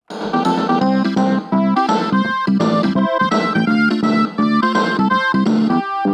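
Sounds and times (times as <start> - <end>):
Casio SA-20 electronic keyboard: 0.0 - 6.1.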